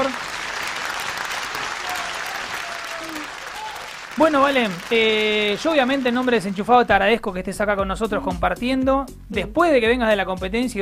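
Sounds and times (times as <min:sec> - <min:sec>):
steady audience applause: 0:00.0 - 0:07.1
speech: 0:04.2 - 0:10.8.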